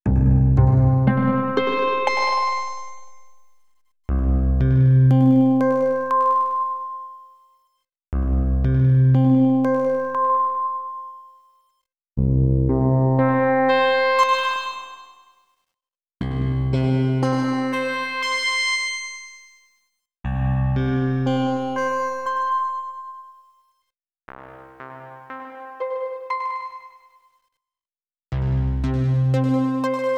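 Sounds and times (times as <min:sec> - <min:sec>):
bass: 0:00.0 - 0:06.7, 0:08.2 - 0:10.7, 0:12.2 - 0:14.4, 0:16.2 - 0:19.1, 0:20.2 - 0:23.0, 0:28.3 - 0:30.0.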